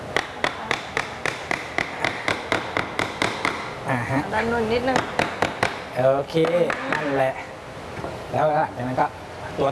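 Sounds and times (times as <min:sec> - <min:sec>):
hammer tapping wooden frame piece into place: 0:00.1 - 0:03.7, 0:04.9 - 0:05.9
speech: 0:04.3 - 0:05.3, 0:06.0 - 0:07.5, 0:08.3 - 0:09.7.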